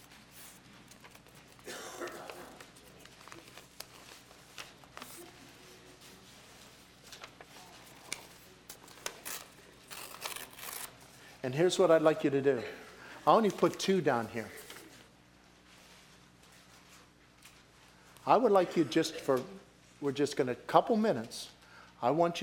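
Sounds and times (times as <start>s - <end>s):
sheet of paper tearing: 0.0s - 5.3s, 7.9s - 11.0s
speech: 11.4s - 14.6s, 18.3s - 22.4s.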